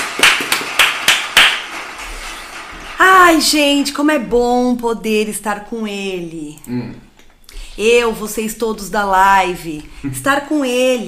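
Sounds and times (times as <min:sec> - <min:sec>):
clapping: 0:00.0 - 0:02.8
speech: 0:03.3 - 0:07.1, 0:07.8 - 0:11.0.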